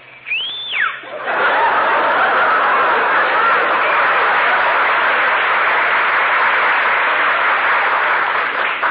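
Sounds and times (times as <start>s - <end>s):
loud whistle through the teeth: 0.2s - 1.0s
laughter: 1.1s - 8.8s.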